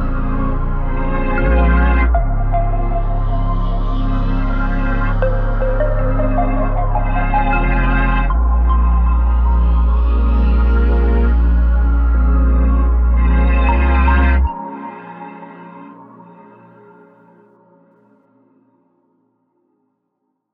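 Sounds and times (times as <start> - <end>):
cassette music loop: 0.0 - 14.5.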